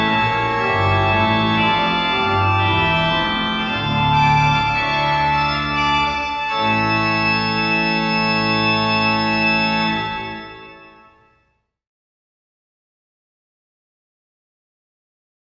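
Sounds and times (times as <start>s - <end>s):
organ chorale prelude: 0.0s - 11.4s.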